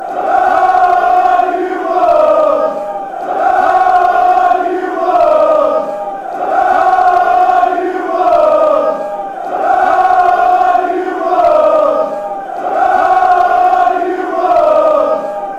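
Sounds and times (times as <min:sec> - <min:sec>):
Wolves football fans chanting: 0:00.0 - 0:15.5.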